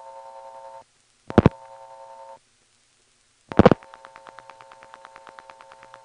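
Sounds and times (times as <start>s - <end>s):
telephone line tone: 0.0s - 2.4s, 3.5s - 6.0s
telephone dialing bursts: 1.3s - 1.6s, 3.5s - 6.0s
quick pulsing clicks on a phone line: 3.5s - 6.0s.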